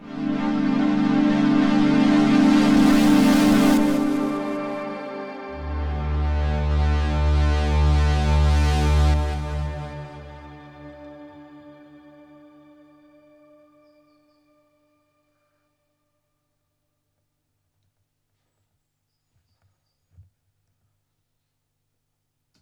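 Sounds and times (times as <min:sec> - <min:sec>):
Polybrute 12 synthesizer pad: 0:00.0 - 0:14.9.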